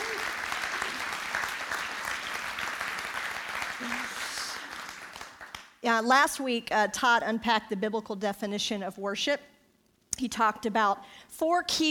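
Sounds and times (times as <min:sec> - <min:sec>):
audience round of applause: 0:00.0 - 0:05.6
speech: 0:05.8 - 0:09.5, 0:10.2 - 0:11.9.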